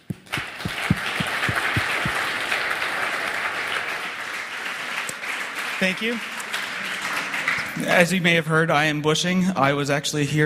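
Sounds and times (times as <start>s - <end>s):
audience applause: 0.0s - 8.1s
speech: 5.8s - 6.4s, 7.8s - 10.4s.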